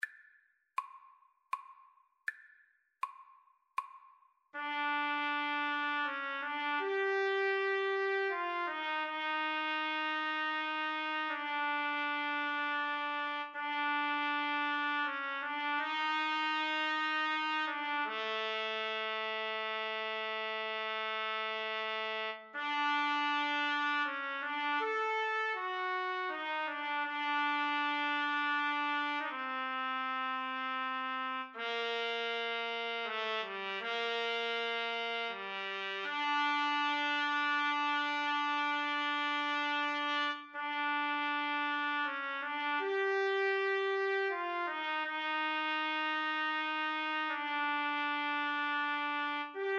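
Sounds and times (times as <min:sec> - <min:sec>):
trumpet: 0:04.6 - 0:49.7.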